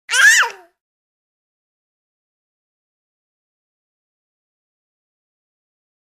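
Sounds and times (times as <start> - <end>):
baby yelling happily: 0.1 - 0.8.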